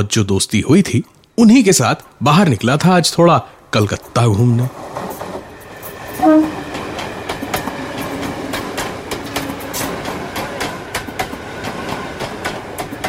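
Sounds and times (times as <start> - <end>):
speech: 0.0 - 5.1
local train passing: 3.8 - 13.0.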